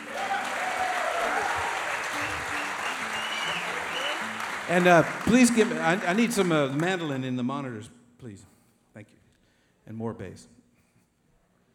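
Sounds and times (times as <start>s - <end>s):
audience applause welcoming a mandolin player from Austin, Texas onto the stage: 0.0s - 7.3s
speech: 4.7s - 9.2s, 9.9s - 10.6s.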